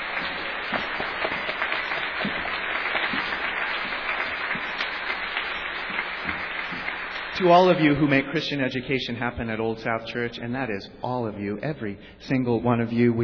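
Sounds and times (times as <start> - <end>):
crowd applauding: 0.0 - 8.2
speech: 7.4 - 13.2.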